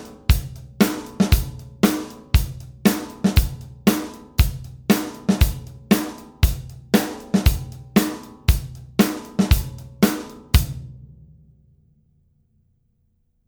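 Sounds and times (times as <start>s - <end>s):
rock n roll snare drum variations: 0.0s - 10.6s.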